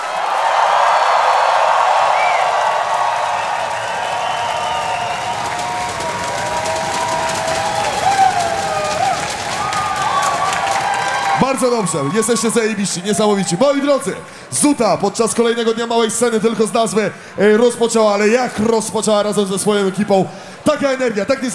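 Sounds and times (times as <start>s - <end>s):
large festival crowd cheering and shouting: 0.0s - 20.2s
whistles: 2.1s - 2.5s, 3.4s - 6.0s
speech: 11.6s - 21.5s.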